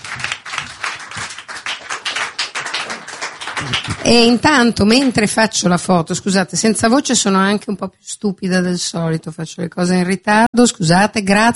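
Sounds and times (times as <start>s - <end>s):
audience applause: 0.0s - 5.1s
speech: 3.6s - 11.5s.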